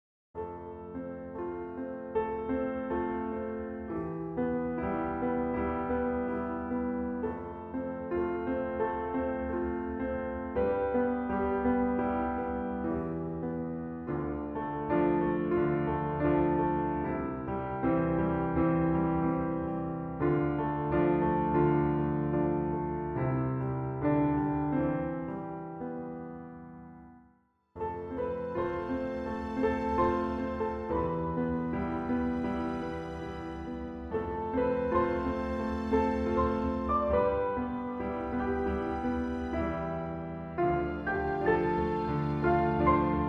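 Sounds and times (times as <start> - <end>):
piano theme: 0.4 - 43.2.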